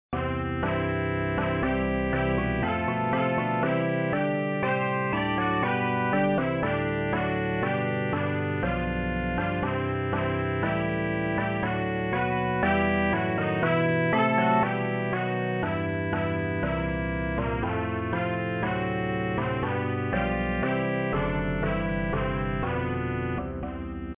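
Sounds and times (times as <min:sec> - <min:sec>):
hymn music: 0:00.2 - 0:23.6.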